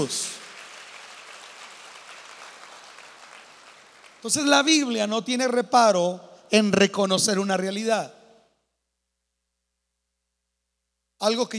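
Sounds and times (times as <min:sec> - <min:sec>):
speech: 0:00.0 - 0:00.4, 0:04.2 - 0:08.2, 0:11.2 - 0:11.5
audience applause: 0:00.0 - 0:04.3.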